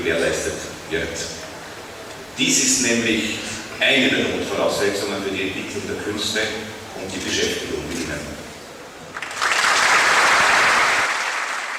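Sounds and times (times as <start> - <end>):
speech: 0.0 - 1.5, 2.4 - 8.4
audience applause after a speech: 9.1 - 11.7.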